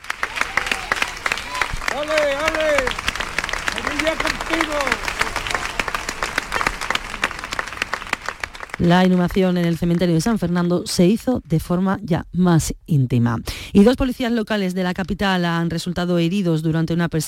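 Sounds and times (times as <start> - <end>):
large crowd applauding a funeral procession: 0.0 - 10.5
voices calling out and chattering: 0.2 - 7.5
speech: 2.0 - 3.0, 4.0 - 5.1, 8.8 - 17.2.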